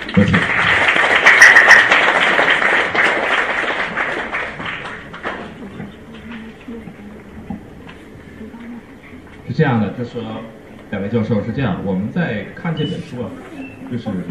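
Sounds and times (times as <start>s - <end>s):
crowd applauding: 0.0s - 6.5s
speech: 0.2s - 0.6s, 9.6s - 14.2s
faint murmuring voices: 5.2s - 9.5s, 12.9s - 14.2s.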